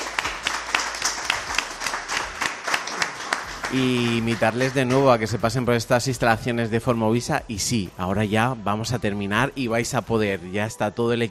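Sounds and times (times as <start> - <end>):
audience applause: 0.0 - 5.6
speech: 3.7 - 11.3.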